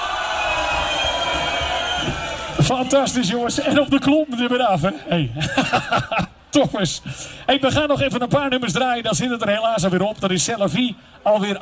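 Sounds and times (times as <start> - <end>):
crowd applause and cheering for a Dutch party band at a Radio Continu event: 0.0 - 3.5
speech: 2.7 - 11.6
laughter: 5.3 - 6.4.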